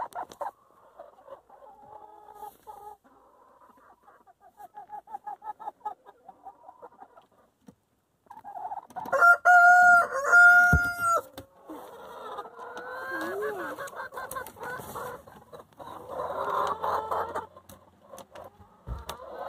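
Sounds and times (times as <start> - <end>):
chickens clucking: 0.0 - 19.4
rooster crowing: 9.1 - 11.3.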